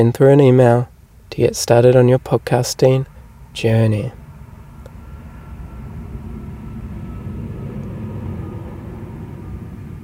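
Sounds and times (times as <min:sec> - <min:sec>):
speech: 0:00.0 - 0:04.2
big vehicle driving past outside: 0:04.2 - 0:10.0.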